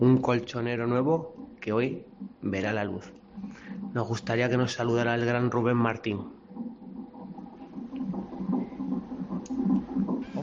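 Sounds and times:
speech: 0.0 - 6.4
fetal heartbeat on ultrasound: 0.0 - 10.4.

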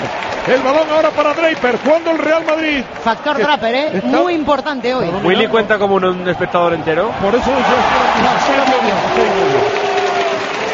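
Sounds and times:
man applauding in an arena: 0.0 - 3.6, 7.6 - 10.7
speech: 0.5 - 9.8.

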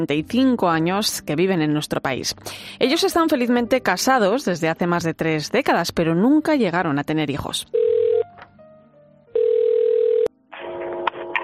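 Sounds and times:
speech: 0.0 - 7.8
telephone ringing on the line: 7.8 - 8.3, 9.4 - 11.1.

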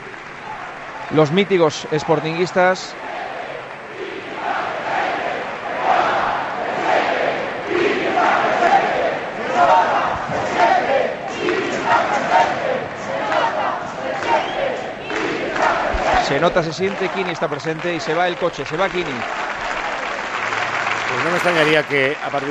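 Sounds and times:
applause: 0.0 - 3.0, 8.2 - 8.8, 11.4 - 12.5, 13.2 - 22.5
large crowd chanting: 0.0 - 18.4, 19.0 - 22.5
speech: 1.1 - 3.0, 16.4 - 19.5, 21.3 - 22.5.

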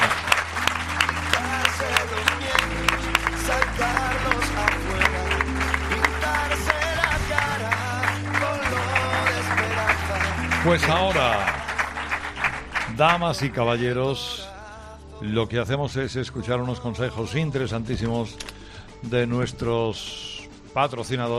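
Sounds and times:
audience applause: 0.0 - 13.7
music bed with deep stepping bass line: 0.0 - 21.3
speech: 10.7 - 11.5, 13.0 - 14.5, 15.2 - 21.3.

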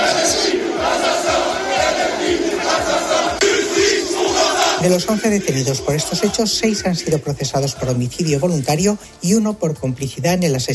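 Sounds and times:
crowd shouting slogans in the street: 0.0 - 8.0
speech: 4.8 - 10.7.

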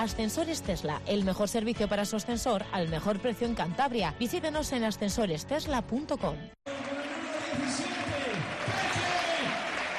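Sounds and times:
speech: 0.0 - 6.6
stadium crowd ovation with cheering and clapping: 6.7 - 9.9.

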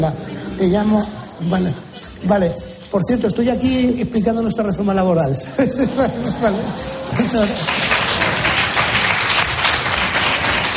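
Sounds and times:
laughter: 0.0 - 3.6, 5.4 - 10.7
speech: 0.0 - 7.8
audience applauding: 6.2 - 10.7.

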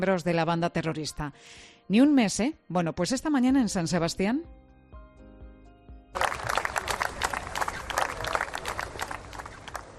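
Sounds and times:
speech: 0.0 - 4.7
applause from a gathered crowd: 6.2 - 9.9.

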